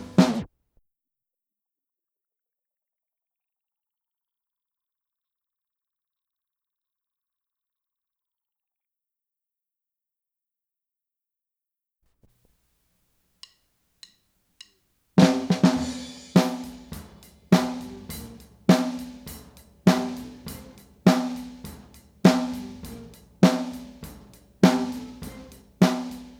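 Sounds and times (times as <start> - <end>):
snare drum: 0.0 - 0.5, 15.2 - 26.3.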